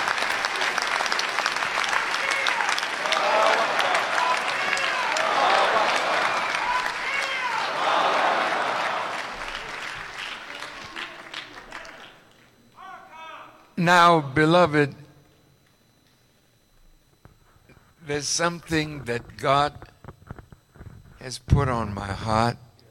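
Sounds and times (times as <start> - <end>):
audience applause: 0.0 - 12.5
speech: 13.9 - 15.0, 18.1 - 19.9, 21.2 - 22.6.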